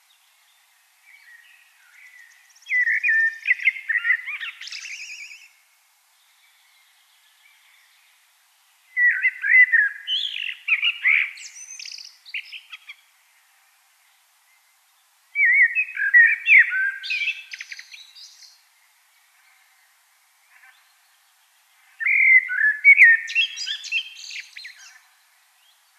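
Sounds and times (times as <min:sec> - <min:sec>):
common blackbird fluted warbling song: 0:01.2 - 0:05.6, 0:08.9 - 0:13.0, 0:15.4 - 0:18.6, 0:22.0 - 0:25.1.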